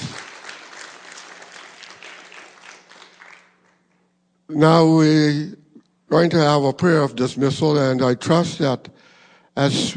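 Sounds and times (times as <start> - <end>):
audience applause: 0.0 - 3.8
speech: 4.5 - 9.0, 9.6 - 9.9.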